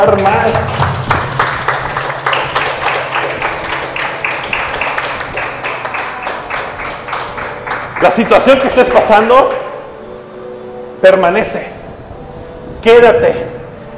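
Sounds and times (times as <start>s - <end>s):
speech: 0.0s - 1.0s, 8.0s - 9.6s, 11.0s - 11.8s, 12.8s - 13.9s
audience applauding: 0.0s - 9.2s.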